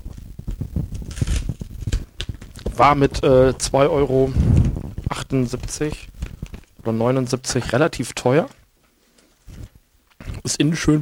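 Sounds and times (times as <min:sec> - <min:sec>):
crinkly snack packet crackling and rustling: 0:00.0 - 0:11.0
crinkly snack packet torn open: 0:00.9 - 0:03.6, 0:04.2 - 0:06.8
speech: 0:02.8 - 0:04.6, 0:05.3 - 0:06.1, 0:06.8 - 0:08.6, 0:10.5 - 0:11.0.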